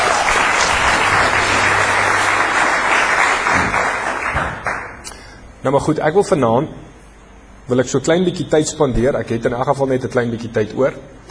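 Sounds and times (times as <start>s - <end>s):
congregation clapping at a church gathering: 0.0s - 5.0s
speech: 5.6s - 6.9s, 7.7s - 11.2s.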